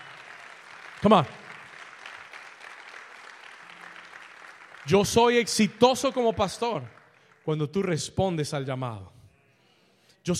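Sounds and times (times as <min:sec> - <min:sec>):
audience applauding: 0:00.0 - 0:08.0
speech: 0:01.0 - 0:01.4, 0:04.9 - 0:09.2.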